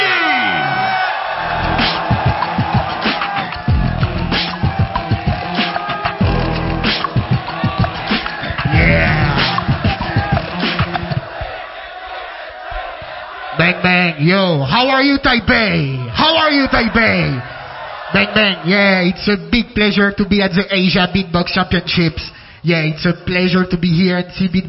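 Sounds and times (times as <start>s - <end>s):
large crowd cheering and whooping: 0.0s - 13.8s, 16.1s - 19.0s
speech: 14.2s - 24.6s.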